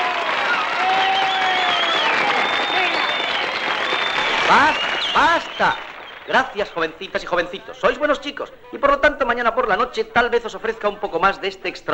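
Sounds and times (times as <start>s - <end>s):
excited shrieks and cheers: 0.0s - 6.8s
girls applauding feverishly: 0.0s - 8.1s
speech: 4.5s - 11.9s.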